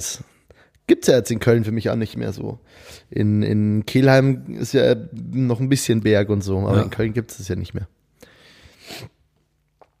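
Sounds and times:
speech: 0:00.0 - 0:08.0, 0:08.9 - 0:09.1
person sniffing: 0:08.2 - 0:09.2.

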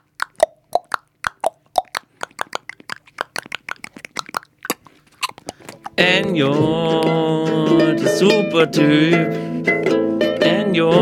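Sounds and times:
horse hoof clopping solo: 0:00.2 - 0:06.6
speech: 0:06.0 - 0:09.5, 0:10.7 - 0:11.0.

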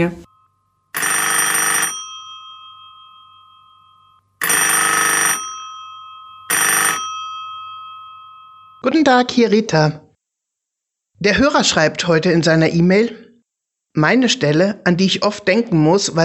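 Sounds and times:
speech: 0:00.0 - 0:00.2, 0:08.8 - 0:10.0, 0:11.2 - 0:13.2, 0:14.0 - 0:16.2
telephone ringing for an incoming call: 0:00.0 - 0:09.4.

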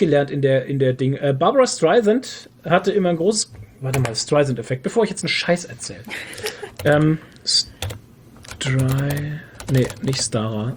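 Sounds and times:
speech: 0:00.0 - 0:08.0, 0:08.6 - 0:10.7
typing on a computer keyboard: 0:06.3 - 0:10.3.

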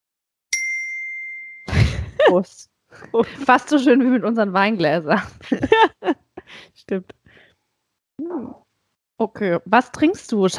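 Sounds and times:
glockenspiel chime on a high C: 0:00.5 - 0:02.4
speech: 0:02.3 - 0:07.2, 0:08.2 - 0:08.6, 0:09.2 - 0:10.5.

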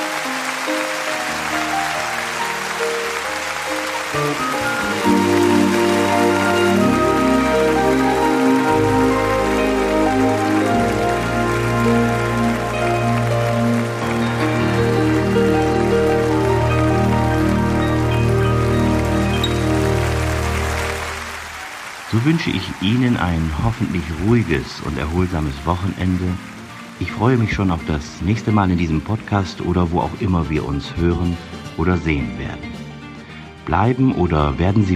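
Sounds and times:
audience applause: 0:00.0 - 0:30.2
speech: 0:22.2 - 0:32.7, 0:33.7 - 0:34.9.

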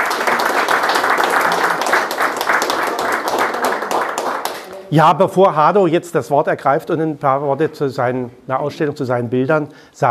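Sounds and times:
audience applause: 0:00.0 - 0:04.8
speech: 0:04.9 - 0:10.1.

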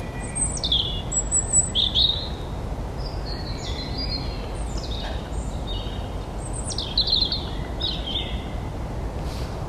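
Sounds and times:
many birds chirping and whistling in the woods: 0:00.0 - 0:09.5.

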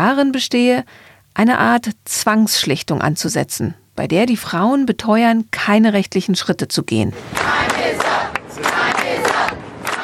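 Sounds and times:
speech: 0:00.0 - 0:07.7
protesting crowd of employees shouting and chanting: 0:07.2 - 0:10.0.

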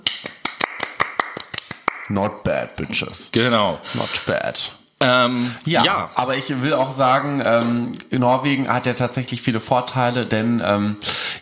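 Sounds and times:
small applause, hand clapping: 0:00.0 - 0:02.2
speech: 0:02.1 - 0:11.4.

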